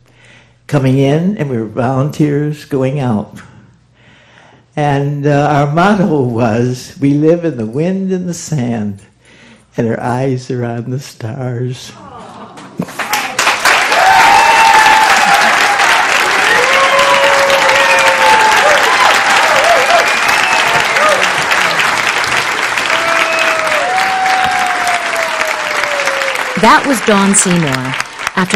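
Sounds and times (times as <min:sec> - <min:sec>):
speech: 0:00.7 - 0:03.5, 0:04.8 - 0:09.1, 0:09.8 - 0:12.1, 0:26.6 - 0:28.5
audience standing ovation applause: 0:12.8 - 0:28.5
people calling out and cheering: 0:12.9 - 0:28.5.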